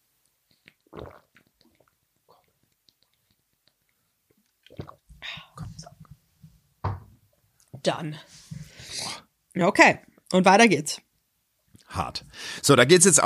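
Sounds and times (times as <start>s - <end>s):
person gulping and swallowing a beverage: 0.5s - 6.0s
speech: 7.8s - 8.4s, 9.6s - 11.0s, 12.0s - 13.2s.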